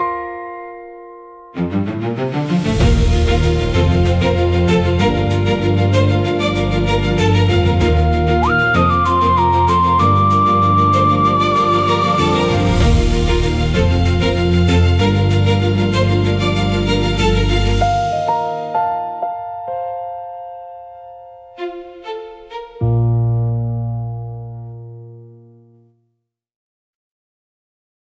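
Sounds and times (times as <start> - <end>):
bright welcoming guest intro music: 1.4 - 23.5.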